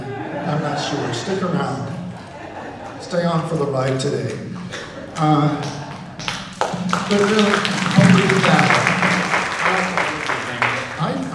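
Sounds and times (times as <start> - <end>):
laughter: 0.0 - 11.3
speech: 0.5 - 2.0, 3.0 - 4.5, 5.2 - 5.8, 7.1 - 8.8
applause: 5.6 - 11.3.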